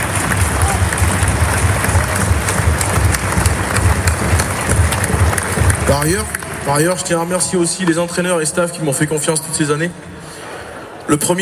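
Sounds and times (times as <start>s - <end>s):
audience applause: 0.0s - 8.2s
speech: 5.9s - 10.2s, 11.1s - 11.4s.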